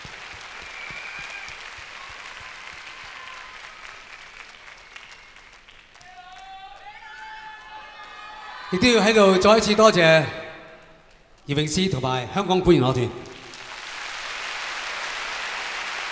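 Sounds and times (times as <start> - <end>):
audience applause at a Cantonese song concert with an orchestra: 0.0 - 10.8, 11.6 - 16.1
speech: 8.7 - 10.4, 11.5 - 13.3.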